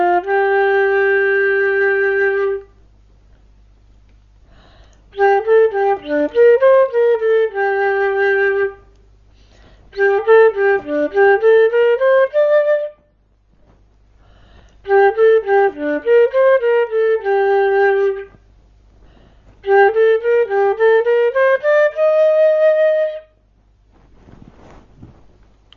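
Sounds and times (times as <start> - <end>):
flute melody: 0.0 - 2.7, 5.1 - 8.9, 9.9 - 13.1, 14.8 - 18.4, 19.6 - 23.4.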